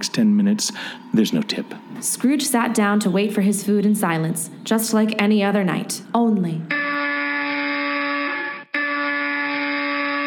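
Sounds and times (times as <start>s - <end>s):
speech: 0.1s - 6.8s
harsh electric apartment door buzzer: 6.7s - 10.2s.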